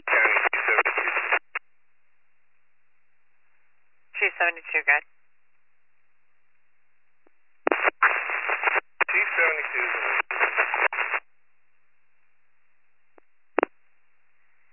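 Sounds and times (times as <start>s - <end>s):
radio static from an advisor radio on a fire engine's emergency channel: 0.0s - 1.6s, 7.7s - 11.2s
speech: 4.5s - 5.2s.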